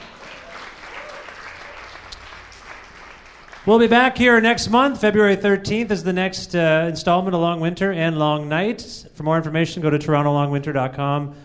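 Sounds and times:
audience applause: 0.0 - 4.0
speech: 3.6 - 11.4.

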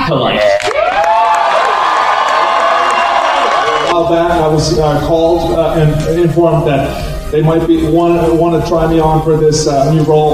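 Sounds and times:
British studio audience cheering and applauding: 0.0 - 4.0
speech: 0.1 - 0.7, 4.0 - 10.3.

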